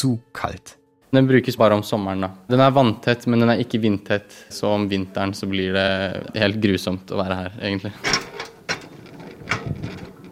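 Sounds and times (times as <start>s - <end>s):
speech: 0.0s - 8.3s
rail draisine rolling on tracks: 8.0s - 10.2s
sharp metallic clacks of draisine: 8.0s - 10.2s.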